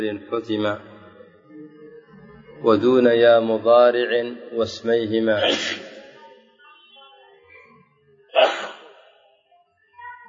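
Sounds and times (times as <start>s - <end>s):
speech: 0.0s - 0.9s, 2.6s - 5.9s
sneeze: 5.4s - 6.0s, 8.3s - 9.1s.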